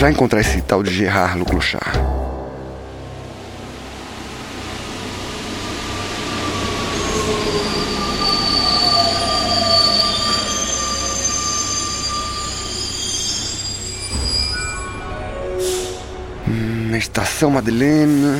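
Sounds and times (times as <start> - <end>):
speech: 0.0 - 2.2, 17.2 - 18.3
Paris Metro line 12 train rolling rumble: 0.0 - 14.5
Paris Metro line 12 train wheel squeal: 4.8 - 16.4.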